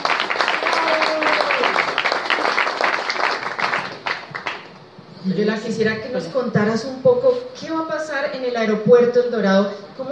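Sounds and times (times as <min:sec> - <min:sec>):
audience applause: 0:00.0 - 0:04.7
speech: 0:05.3 - 0:10.1.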